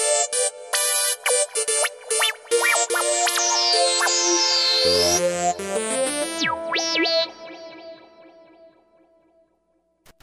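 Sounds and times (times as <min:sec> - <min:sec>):
80s dance music on a Roland SRX-05: 0:00.1 - 0:07.8.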